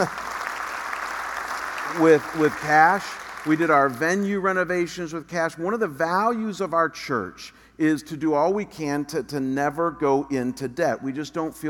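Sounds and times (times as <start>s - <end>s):
speech: 0.0s - 0.2s, 1.9s - 11.6s
crowd applauding: 0.0s - 3.9s.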